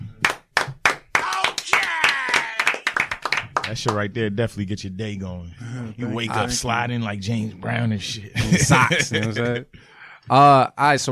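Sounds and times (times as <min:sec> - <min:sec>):
people clapping: 0:00.0 - 0:04.1
speech: 0:03.7 - 0:11.1
laughter: 0:08.4 - 0:09.7.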